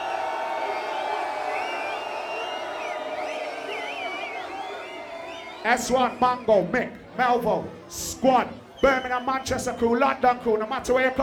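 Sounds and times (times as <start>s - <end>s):
noisy crowd cheering and whooping at a DJ set: 0.0s - 6.0s
siren-like whistles: 0.7s - 6.4s
speech: 5.6s - 11.2s.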